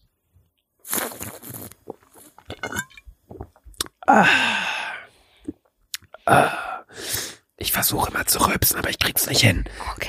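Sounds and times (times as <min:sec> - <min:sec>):
hissing slurp from a drink: 0:00.8 - 0:02.4
speech: 0:04.1 - 0:04.6, 0:07.8 - 0:10.0.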